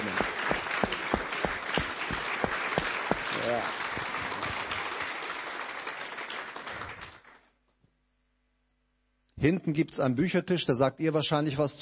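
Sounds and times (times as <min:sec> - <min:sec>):
lively audience applause welcoming two guests: 0:00.0 - 0:07.5
speech: 0:09.4 - 0:11.8.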